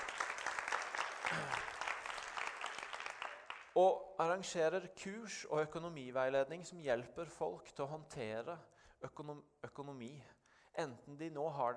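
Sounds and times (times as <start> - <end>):
audience clapping: 0.0 - 3.8
speech: 3.8 - 11.7.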